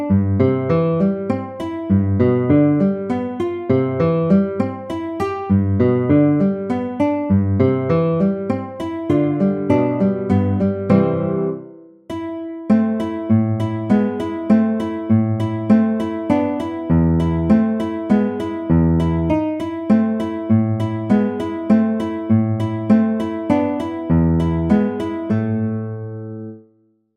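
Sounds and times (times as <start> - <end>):
classical guitar piece in andante grazioso: 0.0 - 26.8.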